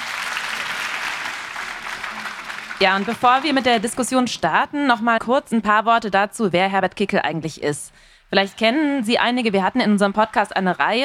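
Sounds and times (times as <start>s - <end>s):
audience applause for guests: 0.0s - 4.0s
speech: 2.8s - 11.0s.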